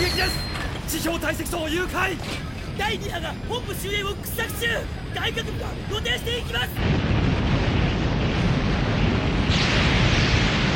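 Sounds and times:
speech: 0.2s - 7.2s
explosion shockwave: 6.8s - 10.7s.

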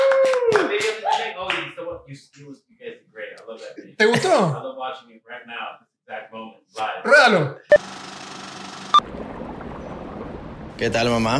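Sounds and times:
applause: 0.0s - 1.7s
speech: 1.3s - 8.0s, 10.8s - 11.3s.

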